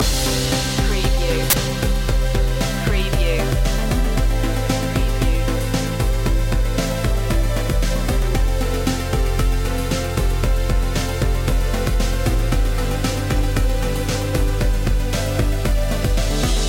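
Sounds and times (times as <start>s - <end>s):
futuristic technology music loop: 0.0s - 16.6s.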